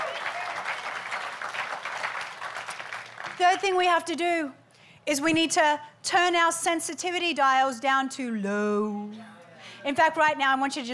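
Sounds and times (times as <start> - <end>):
audience applause: 0.0 - 3.4
speech: 3.4 - 10.9.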